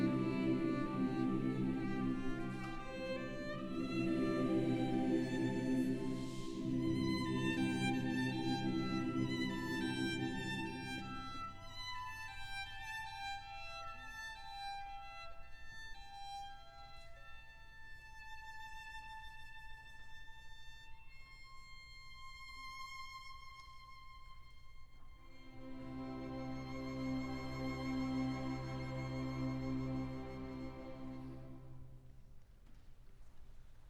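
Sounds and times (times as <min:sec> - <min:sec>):
wedding chorus singing: 0:00.0 - 0:12.4, 0:25.5 - 0:32.0.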